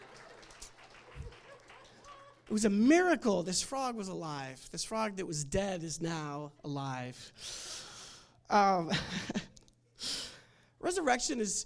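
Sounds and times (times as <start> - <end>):
audience clapping: 0.0 - 2.7
speech: 2.5 - 7.7, 8.5 - 9.3, 11.1 - 11.6.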